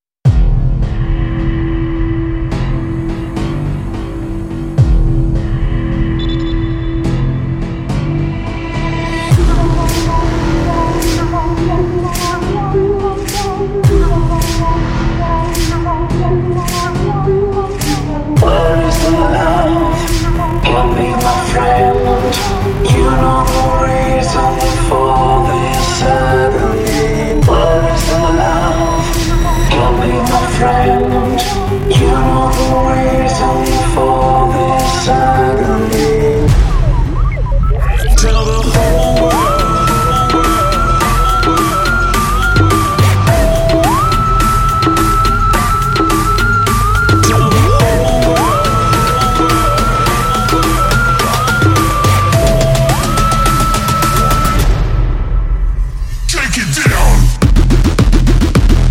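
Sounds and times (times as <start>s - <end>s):
theme background score music: 0.3s - 58.8s.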